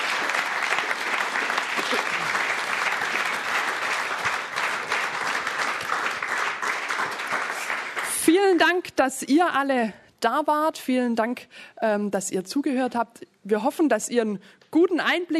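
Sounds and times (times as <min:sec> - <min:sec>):
applause: 0:00.0 - 0:08.8
speech: 0:08.5 - 0:15.3.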